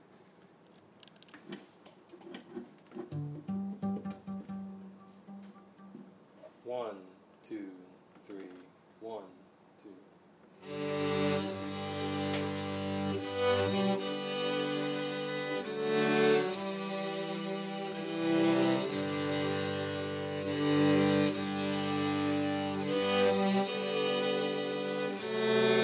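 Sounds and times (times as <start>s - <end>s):
cello: 3.0s - 6.0s, 10.6s - 25.8s.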